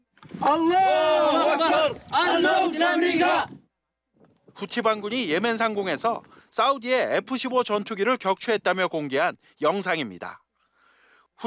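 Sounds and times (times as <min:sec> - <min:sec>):
group of men cheering and shouting a battle cry: 0:00.4 - 0:03.6
speech: 0:00.5 - 0:03.6, 0:04.6 - 0:10.4.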